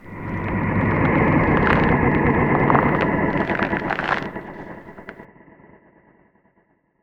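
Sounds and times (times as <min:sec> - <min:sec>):
creak: 0:00.0 - 0:05.2.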